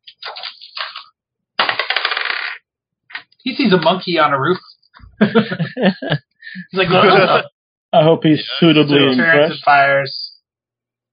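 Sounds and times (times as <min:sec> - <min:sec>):
plastic dice rattling and tumbling across a surface: 0:01.6 - 0:02.6
speech: 0:03.4 - 0:10.3
laughter: 0:05.1 - 0:07.5, 0:08.1 - 0:09.7.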